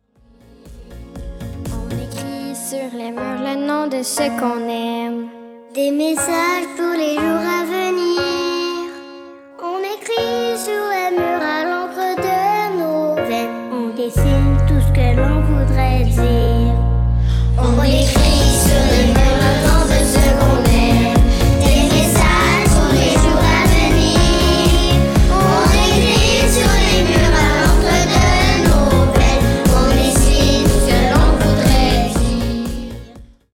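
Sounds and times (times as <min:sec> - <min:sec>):
pop birthday song: 0:00.3 - 0:33.5.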